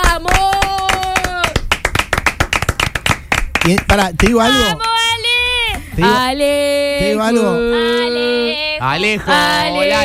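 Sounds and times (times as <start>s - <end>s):
studio audience clapping: 0.0s - 5.0s
speech: 3.6s - 4.9s, 6.0s - 10.0s.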